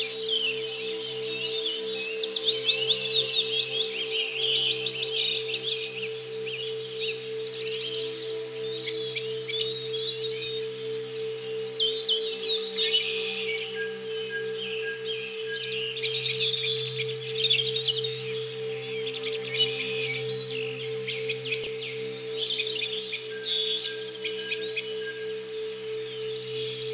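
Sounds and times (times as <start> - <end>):
brainwave therapy tones: 0.0 - 26.9.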